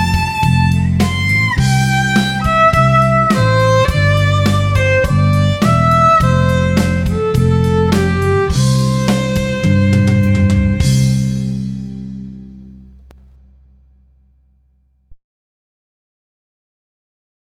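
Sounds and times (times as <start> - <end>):
playalong music track: 0.0 - 13.2.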